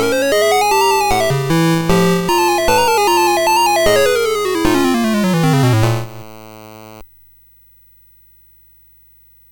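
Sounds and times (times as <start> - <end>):
music box melody on SID MOS6581R4 chip: 0.0 - 6.2.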